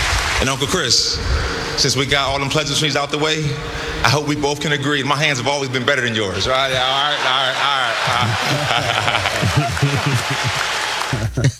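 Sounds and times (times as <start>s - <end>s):
laughter: 0.4s - 11.5s
speech: 0.4s - 11.5s
clapping: 6.8s - 11.5s.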